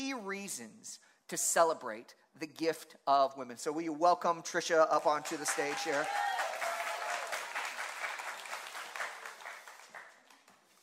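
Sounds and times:
speech: 0:00.2 - 0:06.4
audience applause: 0:05.2 - 0:10.4.

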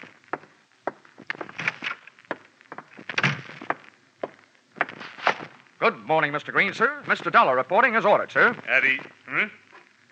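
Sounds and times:
heel-clicking footsteps: 0:00.0 - 0:05.6
speech: 0:05.8 - 0:09.6.

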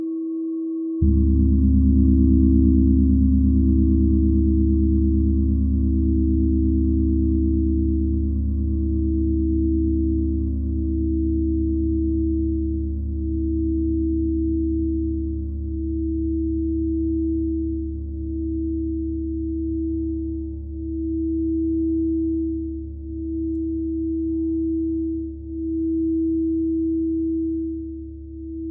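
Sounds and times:
singing bowl ringing: 0:00.1 - 0:12.7
deep rich drone: 0:01.0 - 0:27.8.

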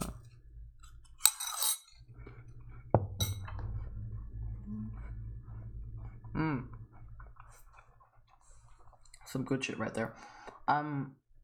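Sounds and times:
steady low hum: 0:00.0 - 0:10.2
fork clinking against a bowl while apple pieces are eaten: 0:01.2 - 0:02.0
speech: 0:09.4 - 0:11.2.

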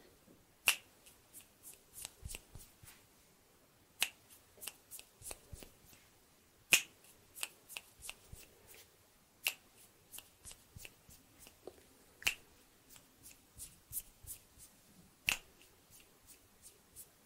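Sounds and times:
finger snaps around a microphone: 0:00.6 - 0:00.9, 0:04.0 - 0:05.4, 0:06.7 - 0:08.2, 0:09.4 - 0:10.9, 0:12.2 - 0:12.4, 0:15.3 - 0:15.5.

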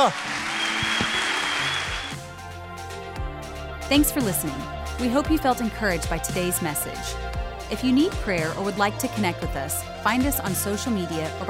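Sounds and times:
speech: 0:00.0 - 0:00.4, 0:03.9 - 0:11.4
audience applause: 0:00.0 - 0:02.3.

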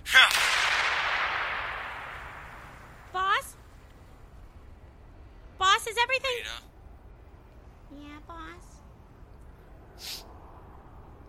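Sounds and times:
bomb explosion effect in an audio drama: 0:00.1 - 0:03.7
speech: 0:06.0 - 0:06.7.

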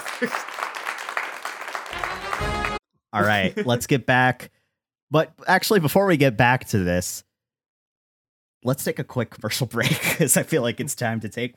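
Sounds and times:
applause sound effect: 0:00.0 - 0:02.8
speech: 0:00.2 - 0:00.6, 0:03.1 - 0:07.3, 0:08.6 - 0:11.5.

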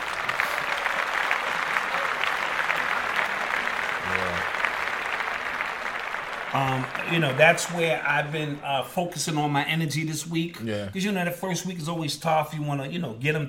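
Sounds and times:
audience applause: 0:00.0 - 0:09.6
speech: 0:06.5 - 0:13.4.

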